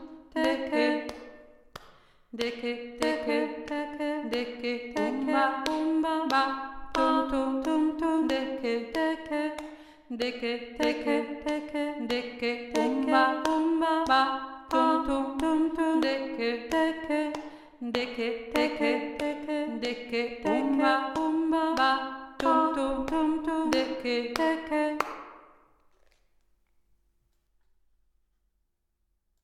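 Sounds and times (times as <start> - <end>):
second voice singing nonsense syllables: 2.4 - 25.0.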